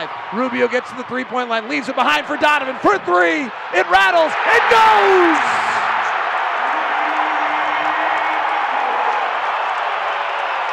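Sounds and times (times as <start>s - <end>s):
speech: 0.0s - 5.6s
arena crowd cheering: 0.0s - 10.7s.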